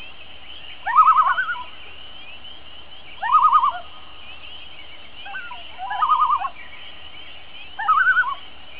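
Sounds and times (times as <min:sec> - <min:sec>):
loon tremolo call: 0:00.8 - 0:01.7, 0:03.2 - 0:03.9, 0:05.3 - 0:06.6.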